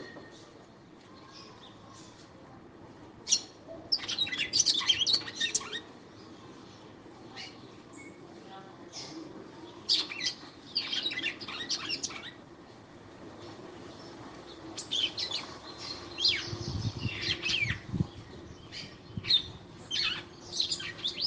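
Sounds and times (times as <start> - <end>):
female red-cowled cardinal singing sharp high chirps and twitters: 3.3 - 8.2, 8.9 - 12.4, 14.0 - 21.2.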